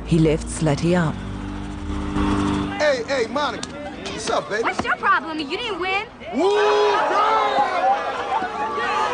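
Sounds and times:
speech: 0.1 - 1.3, 1.9 - 8.1
crowd jeering: 6.3 - 9.1.

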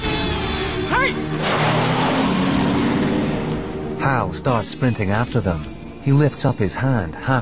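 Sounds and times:
speech: 1.0 - 1.8, 4.0 - 7.4
car engine revving and accelerating as the car speeds away: 1.2 - 4.7.

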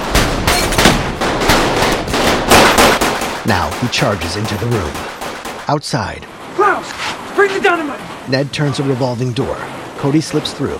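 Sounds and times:
gunfire: 0.0 - 5.8
speech: 3.4 - 10.7.

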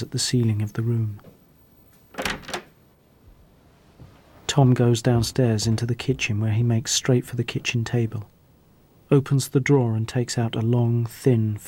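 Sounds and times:
speech: 0.0 - 1.3, 4.6 - 8.3, 9.1 - 11.6
bedroom door latch and hinge opening: 2.1 - 2.8.

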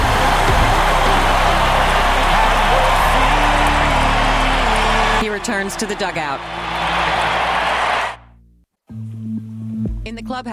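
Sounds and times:
large stadium crowd applauding and cheering: 0.0 - 8.2
speech: 5.6 - 6.7, 10.3 - 10.5.

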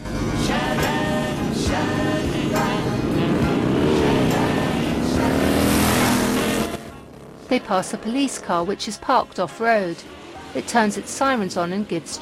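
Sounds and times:
motorcycle engines ridden by a group of bikers down a long road: 0.0 - 12.2
speech: 7.5 - 12.2.

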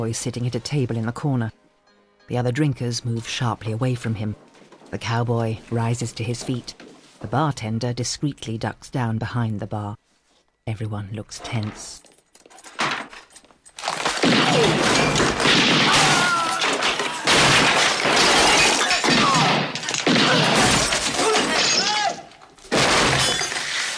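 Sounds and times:
speech: 0.0 - 1.6, 2.3 - 10.0, 10.7 - 12.1
shattering glass during a saloon shootout in a Western radio drama: 12.1 - 23.9
heavy crashes during a saloon shootout: 13.8 - 22.1.

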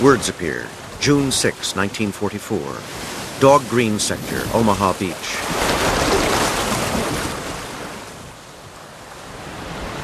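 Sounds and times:
speech: 0.0 - 5.7
heavy surf and wind at sea around landing craft: 0.0 - 10.0.

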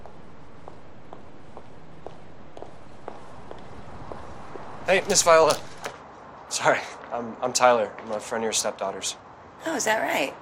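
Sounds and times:
footsteps of people hurrying across a courtyard: 0.0 - 6.4
speech: 4.9 - 5.7, 6.5 - 10.4.

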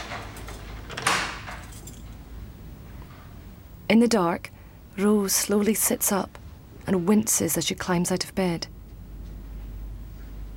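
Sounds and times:
bolt on a door sliding shut: 0.0 - 1.7
faint steady background: 0.0 - 10.5
speech: 3.9 - 8.8.

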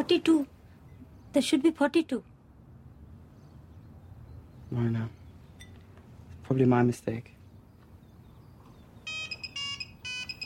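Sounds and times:
speech: 0.0 - 0.6, 1.3 - 2.3, 4.7 - 5.2, 6.5 - 7.4
telephone ringing: 9.0 - 10.4.

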